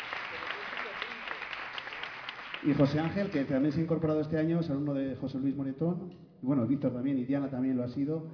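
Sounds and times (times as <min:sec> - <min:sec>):
music school concert audience applauding a teacher: 0:00.0 - 0:03.8
speech: 0:02.6 - 0:08.3.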